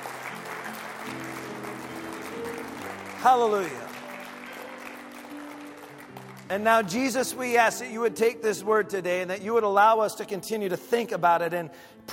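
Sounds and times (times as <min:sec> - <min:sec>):
audience clapping: 0:00.0 - 0:07.8
speech: 0:03.2 - 0:03.9, 0:06.5 - 0:12.1.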